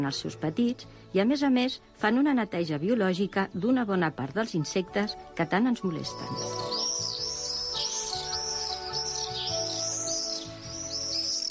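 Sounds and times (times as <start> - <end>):
speech: 0.0 - 6.8
common swifts screeching: 6.0 - 11.4.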